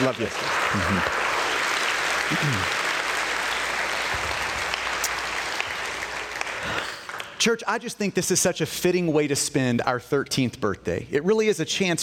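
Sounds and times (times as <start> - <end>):
speech: 0.0 - 1.2, 2.3 - 2.8, 7.4 - 12.0
crowd applauding: 0.0 - 7.4.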